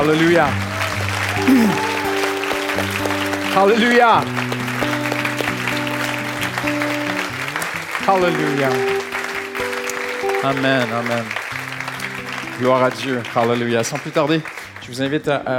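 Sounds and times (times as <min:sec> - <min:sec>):
speech: 0:00.0 - 0:00.7, 0:01.4 - 0:01.9, 0:02.8 - 0:04.4, 0:06.6 - 0:06.8, 0:08.0 - 0:09.1, 0:10.4 - 0:11.4, 0:12.6 - 0:15.5
crowd applauding and cheering: 0:00.0 - 0:15.4
sustained keyboard chords: 0:01.1 - 0:13.9
person calling out: 0:01.4 - 0:02.2.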